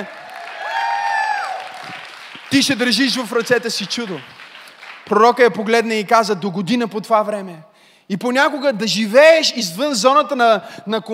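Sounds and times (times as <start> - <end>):
speech: 0.0 - 0.2, 2.5 - 4.4, 5.1 - 11.1
applause: 0.0 - 5.8.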